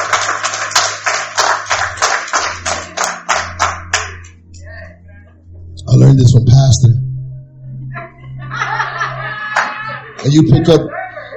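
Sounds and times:
audience clapping hands in applause: 0:00.0 - 0:04.4, 0:09.5 - 0:10.4
low hum: 0:03.8 - 0:09.4
speech: 0:06.1 - 0:07.0, 0:10.2 - 0:10.9
laughter: 0:07.9 - 0:11.3.

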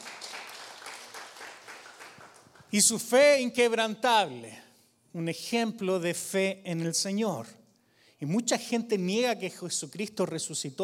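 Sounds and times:
audience applause: 0:00.0 - 0:02.7
speech: 0:02.7 - 0:04.6, 0:05.2 - 0:07.6, 0:08.2 - 0:10.8.

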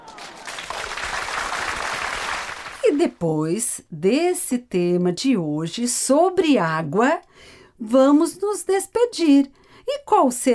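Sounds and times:
applause: 0:00.0 - 0:03.2
speech: 0:03.0 - 0:10.5.

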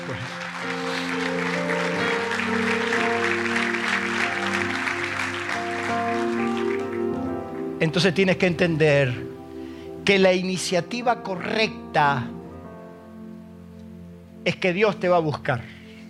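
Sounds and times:
audience clapping: 0:00.0 - 0:08.1
sustained keyboard chords: 0:00.0 - 0:16.0
speech: 0:07.8 - 0:09.3, 0:10.1 - 0:12.4, 0:14.4 - 0:15.8.

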